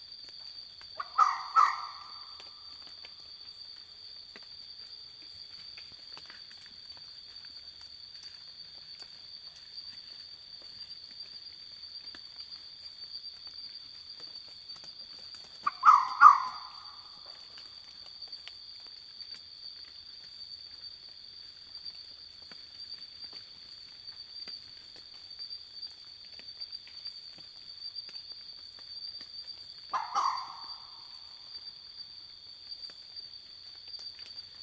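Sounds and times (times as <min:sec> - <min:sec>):
red fox calling: 0:01.0 - 0:02.6, 0:15.6 - 0:17.4, 0:29.9 - 0:31.2.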